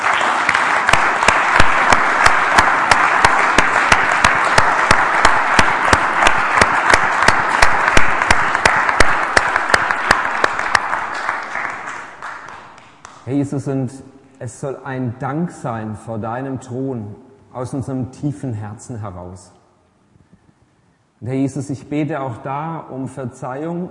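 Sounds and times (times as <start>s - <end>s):
audience applauding: 0.0s - 13.3s
speech: 13.3s - 19.6s, 21.2s - 23.8s.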